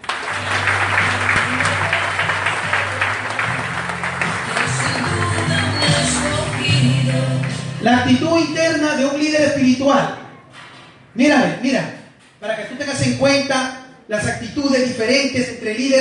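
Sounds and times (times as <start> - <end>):
loud audience applause: 0.0 - 7.7
speech: 7.8 - 10.2, 11.2 - 11.9, 13.0 - 15.9.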